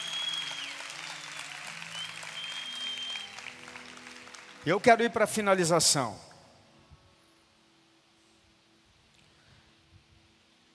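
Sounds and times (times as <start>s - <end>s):
audience applause: 0.0s - 5.4s
speech: 4.6s - 6.3s.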